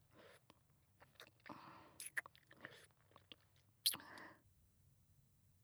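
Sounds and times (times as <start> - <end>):
ASMR ear licking sounds for sleep: 0.4 - 4.3.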